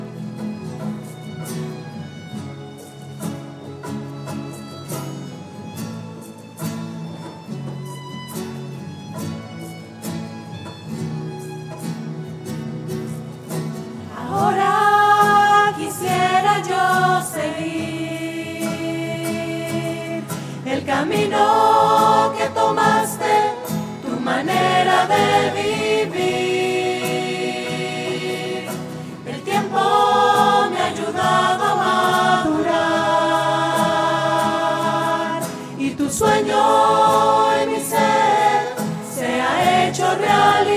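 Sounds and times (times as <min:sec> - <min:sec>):
voices singing: 0:14.1 - 0:40.7.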